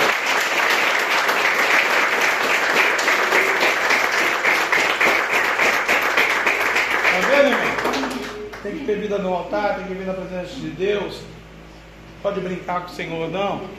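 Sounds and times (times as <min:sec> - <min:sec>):
audience applause: 0:00.0 - 0:08.7
speech: 0:08.6 - 0:11.4, 0:12.2 - 0:13.7.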